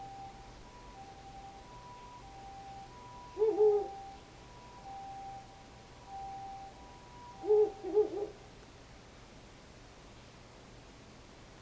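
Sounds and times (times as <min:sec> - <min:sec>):
faint humming tones: 0:00.0 - 0:11.6
owl hooting: 0:03.1 - 0:04.3, 0:06.1 - 0:08.4.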